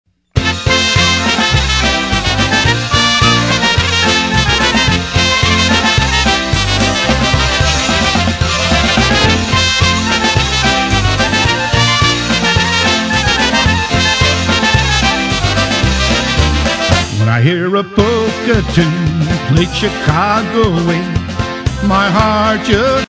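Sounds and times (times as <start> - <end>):
polka music: 0.4 - 23.0.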